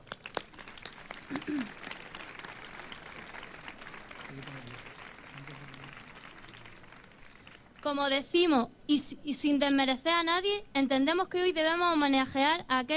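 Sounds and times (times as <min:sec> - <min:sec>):
audience applause: 0:00.0 - 0:07.9
speech: 0:01.5 - 0:01.8, 0:04.3 - 0:04.8, 0:07.8 - 0:12.9.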